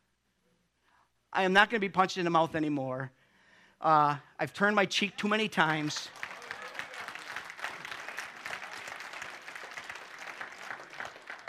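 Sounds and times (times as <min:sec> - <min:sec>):
speech: 0:01.3 - 0:03.2, 0:03.8 - 0:06.3
audience clapping: 0:05.5 - 0:11.4.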